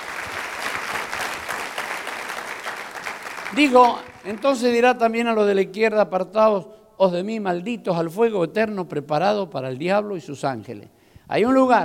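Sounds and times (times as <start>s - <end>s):
audience applause: 0.0s - 4.8s
speech: 3.5s - 11.8s.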